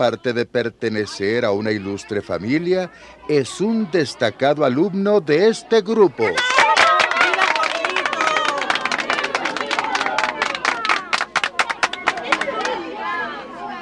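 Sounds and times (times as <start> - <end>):
speech: 0.0 - 6.6
audience applauding: 6.4 - 12.8.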